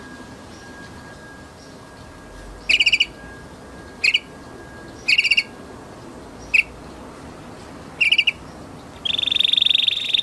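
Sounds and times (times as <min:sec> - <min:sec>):
steady faint hum: 0:00.0 - 0:10.2
orange canary chirping and trilling: 0:02.6 - 0:03.2, 0:04.0 - 0:04.3, 0:05.0 - 0:05.5, 0:08.0 - 0:10.2.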